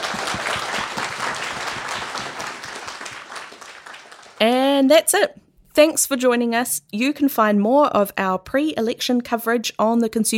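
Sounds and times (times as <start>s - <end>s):
crowd applause: 0.0s - 4.4s
speech: 4.4s - 10.3s.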